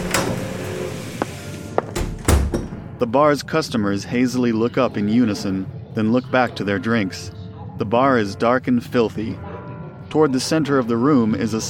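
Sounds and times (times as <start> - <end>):
door creaking open: 0.0 - 2.8
speech: 3.0 - 9.5, 10.1 - 11.6.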